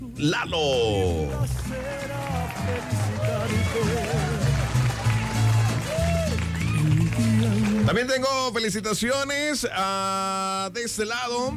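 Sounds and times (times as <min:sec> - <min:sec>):
speech: 0:00.2 - 0:04.2, 0:07.2 - 0:11.5
crowd applause: 0:01.3 - 0:08.1
crowd cheering and whistling: 0:01.7 - 0:07.6
excited voices shouting: 0:02.0 - 0:06.9.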